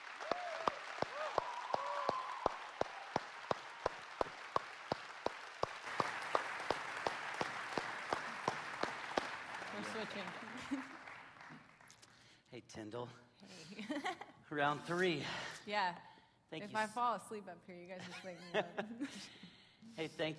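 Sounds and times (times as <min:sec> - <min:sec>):
audience clapping in rhythm to welcome a speaker: 0:00.0 - 0:12.4
speech: 0:10.1 - 0:11.0, 0:12.6 - 0:20.3.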